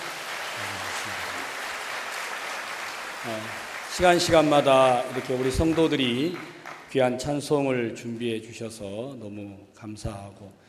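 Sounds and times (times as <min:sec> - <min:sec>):
audience applause: 0:00.0 - 0:07.1
speech: 0:03.2 - 0:10.6.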